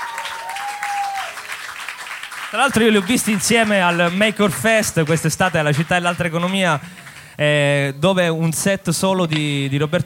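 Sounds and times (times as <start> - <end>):
audience applause: 0.0 - 7.4
speech: 2.5 - 10.0.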